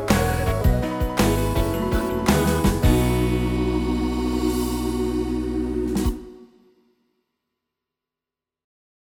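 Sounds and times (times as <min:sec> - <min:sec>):
gospel swing music: 0:00.0 - 0:06.4.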